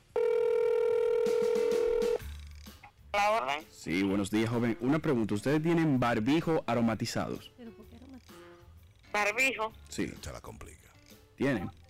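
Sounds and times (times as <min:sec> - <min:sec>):
telephone tone as a call is placed to a shop: 0:00.0 - 0:02.2
speech: 0:03.1 - 0:07.6, 0:09.2 - 0:10.8, 0:11.4 - 0:11.8.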